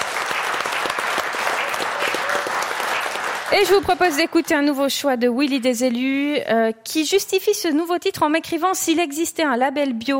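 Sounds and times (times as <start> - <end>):
studio audience applauding: 0.0 - 4.8
speech: 3.5 - 10.1.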